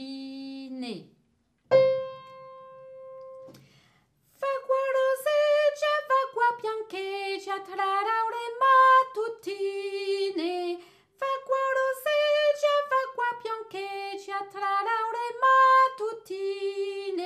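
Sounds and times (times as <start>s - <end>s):
singing: 4.4s - 17.2s.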